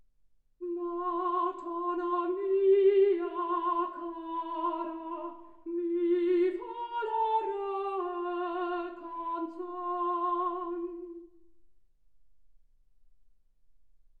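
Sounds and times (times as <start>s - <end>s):
soprano singing: 0.6s - 11.4s.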